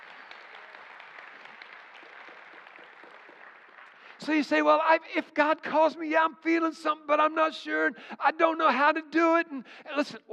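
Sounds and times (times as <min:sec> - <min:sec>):
audience clapping: 0:00.0 - 0:04.9
speech: 0:04.2 - 0:10.3.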